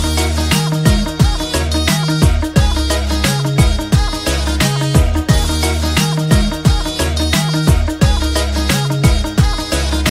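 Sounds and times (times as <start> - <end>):
Punjabi music ringtone: 0.0 - 10.0.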